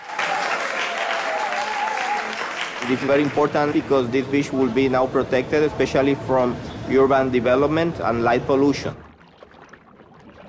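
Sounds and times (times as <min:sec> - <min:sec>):
people applauding: 0:00.0 - 0:04.2
speech: 0:02.8 - 0:09.0.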